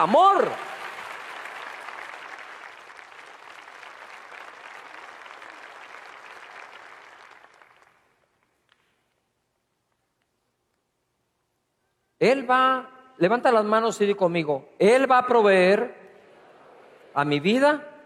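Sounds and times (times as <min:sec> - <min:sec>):
speech: 0:00.0 - 0:00.7, 0:12.2 - 0:16.0, 0:17.2 - 0:17.9
audience applauding: 0:00.0 - 0:08.4.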